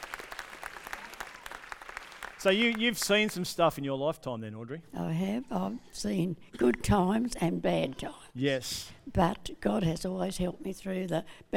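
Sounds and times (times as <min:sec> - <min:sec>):
round of applause: 0:00.0 - 0:03.5
speech: 0:02.4 - 0:11.5.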